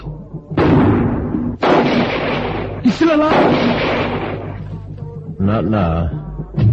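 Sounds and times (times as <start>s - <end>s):
rifle gunshots: 0.6s - 4.7s
speech: 2.9s - 3.6s, 5.4s - 6.6s.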